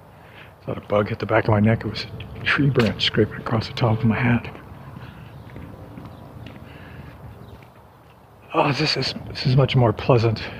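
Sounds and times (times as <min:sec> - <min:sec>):
speech: 0:00.7 - 0:04.6, 0:08.6 - 0:10.5
footsteps of a person walking along a shaded street: 0:02.1 - 0:08.4.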